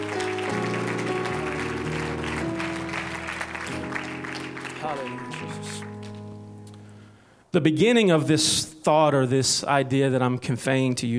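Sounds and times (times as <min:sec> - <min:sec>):
audience hand clapping: 0:00.0 - 0:06.4
speech: 0:04.9 - 0:05.9, 0:07.6 - 0:11.1.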